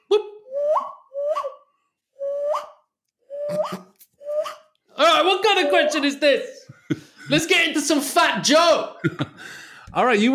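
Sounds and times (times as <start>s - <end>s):
person imitating bird call: 0.0s - 1.6s, 2.2s - 6.1s
speech: 3.5s - 3.9s, 5.2s - 10.3s.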